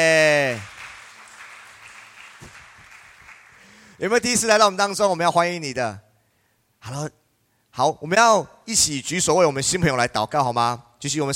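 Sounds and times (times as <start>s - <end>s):
speech: 0.0s - 0.7s, 4.0s - 6.0s, 6.8s - 7.2s, 7.8s - 11.3s
applause welcoming a newcomer: 0.2s - 4.0s.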